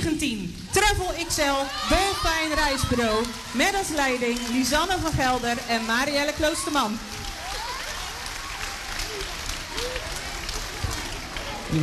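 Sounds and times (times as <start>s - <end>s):
speech: 0.2s - 7.2s
group cheering hooray: 0.7s - 11.8s
clapping: 2.5s - 11.8s.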